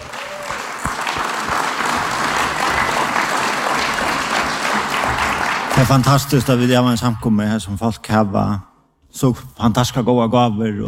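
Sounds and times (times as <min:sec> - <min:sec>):
audience applause: 0:00.0 - 0:06.5
speech: 0:05.8 - 0:10.8.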